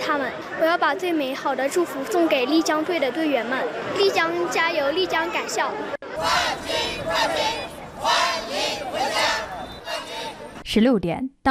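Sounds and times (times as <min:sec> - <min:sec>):
speech: 0:00.1 - 0:07.6, 0:10.7 - 0:11.4
street crowd of residents shouting welcome slogans in unison: 0:05.7 - 0:10.6.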